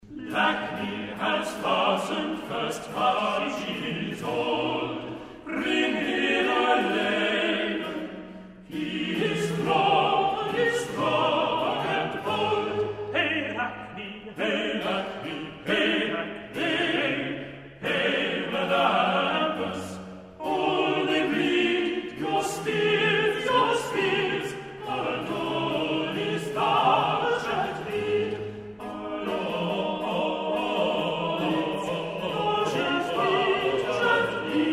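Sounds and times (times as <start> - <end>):
chorus singing: 0.0 - 34.7.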